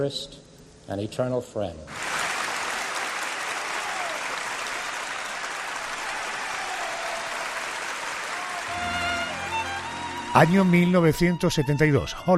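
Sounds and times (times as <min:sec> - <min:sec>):
speech: 0:00.0 - 0:02.1, 0:10.4 - 0:12.3
thunderous standing ovation applause: 0:01.9 - 0:09.8.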